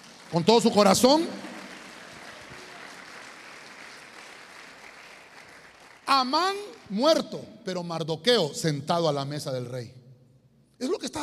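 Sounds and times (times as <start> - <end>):
audience clapping: 0.0 - 7.0
speech: 0.3 - 1.6, 6.2 - 10.0, 10.8 - 11.2.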